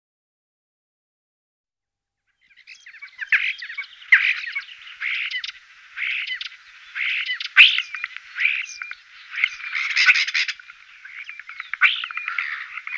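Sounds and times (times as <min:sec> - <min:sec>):
common starling song of clicks, buzzy rattles and whistled slurs: 0:02.9 - 0:12.9.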